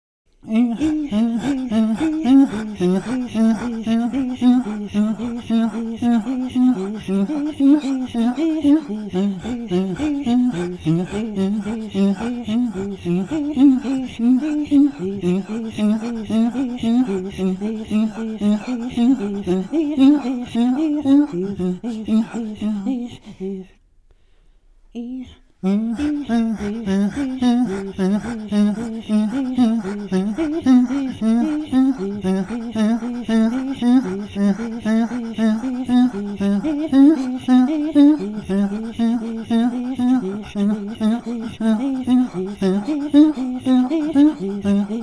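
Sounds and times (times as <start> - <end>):
Inuit throat singing: 0.4 - 23.7, 25.0 - 45.0.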